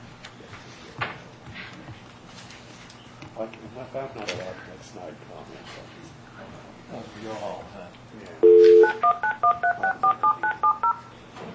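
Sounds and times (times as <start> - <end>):
speech: 3.4 - 10.0
telephone keypad beeps while entering code: 8.4 - 11.0.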